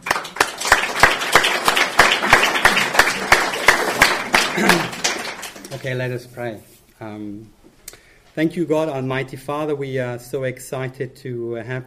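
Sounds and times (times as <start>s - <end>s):
audience applause: 0.0s - 5.8s
speech: 5.8s - 7.6s, 8.4s - 11.8s.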